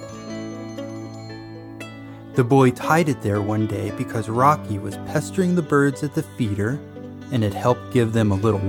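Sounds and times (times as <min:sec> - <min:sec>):
small silver bell jingling on a collar: 0:00.0 - 0:02.2
speech: 0:02.4 - 0:08.6.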